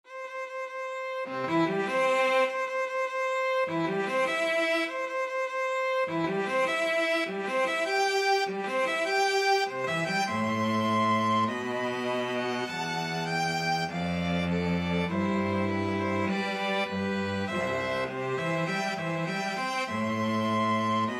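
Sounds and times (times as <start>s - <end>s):
two violins: 0.0s - 21.1s
cello: 0.1s - 21.1s.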